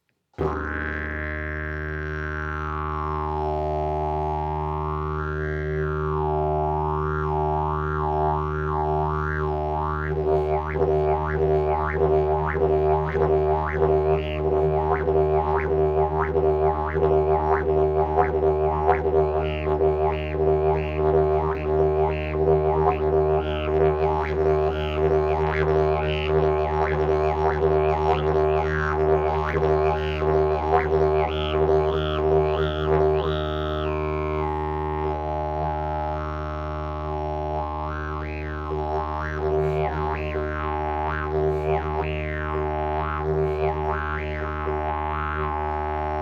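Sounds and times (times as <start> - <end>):
didgeridoo: 0.4 - 46.1.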